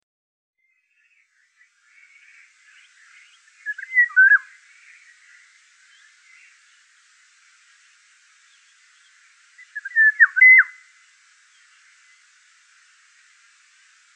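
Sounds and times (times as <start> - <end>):
Eurasian golden oriole fluty yodelling whistled song at Wiesloch: 0.6 - 7.0, 8.4 - 12.3.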